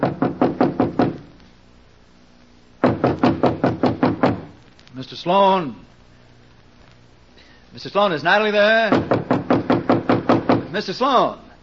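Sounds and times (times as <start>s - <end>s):
firm knocking on a door: 0.0s - 1.2s, 2.8s - 4.5s, 8.9s - 10.7s
speech: 5.0s - 5.9s, 7.7s - 9.2s, 10.7s - 11.4s.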